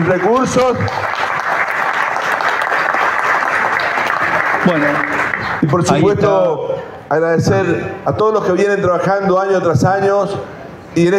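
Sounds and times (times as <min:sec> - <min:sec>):
speech: 0:00.0 - 0:01.2, 0:04.7 - 0:11.1
audience applause: 0:00.0 - 0:05.9.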